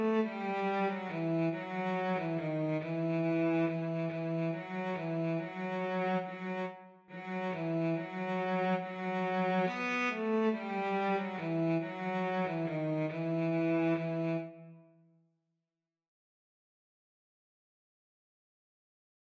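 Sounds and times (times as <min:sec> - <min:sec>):
cello duet: 0:00.0 - 0:14.9.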